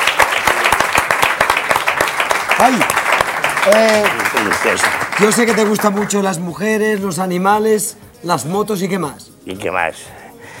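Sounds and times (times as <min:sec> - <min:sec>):
audience applause celebrating good news: 0:00.0 - 0:06.4
speech: 0:02.6 - 0:10.2.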